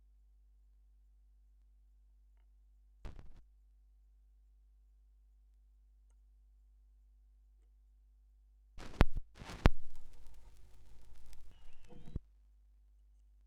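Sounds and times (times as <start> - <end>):
vinyl record noise: 3.1 - 3.4, 8.8 - 12.2.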